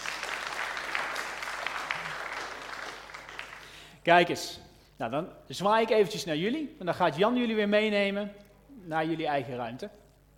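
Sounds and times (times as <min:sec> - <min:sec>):
audience applause: 0:00.0 - 0:03.9
speech: 0:04.0 - 0:10.0.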